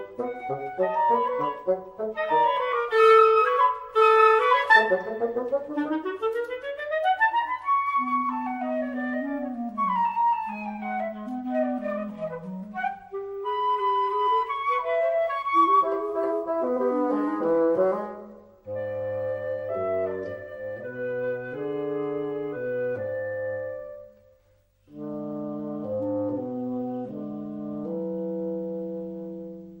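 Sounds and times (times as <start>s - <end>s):
divertimento for flute, clarinet and bassoon: 0.0s - 29.7s.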